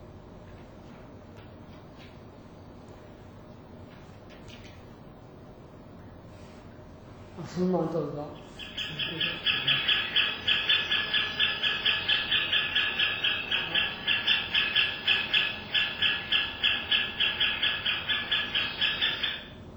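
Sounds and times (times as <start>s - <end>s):
speech: 7.4s - 9.5s
great spotted woodpecker chick calling: 8.4s - 19.6s.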